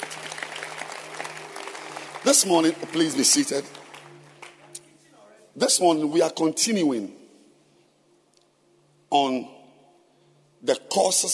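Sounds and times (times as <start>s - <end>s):
audience clapping: 0.0s - 4.8s
speech: 2.2s - 3.8s, 5.6s - 7.2s, 11.0s - 11.3s.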